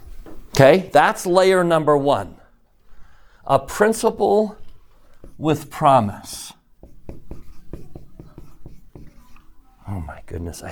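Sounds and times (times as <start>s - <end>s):
speech: 0.6s - 2.4s, 3.4s - 4.6s, 5.4s - 6.6s, 10.3s - 10.7s
pen strokes scratching on paper: 5.2s - 5.7s, 6.8s - 9.6s.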